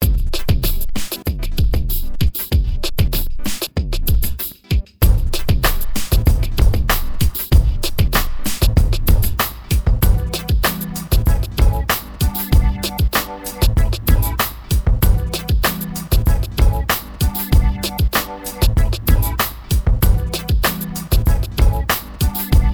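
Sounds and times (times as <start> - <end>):
music beat: 0.0 - 22.7.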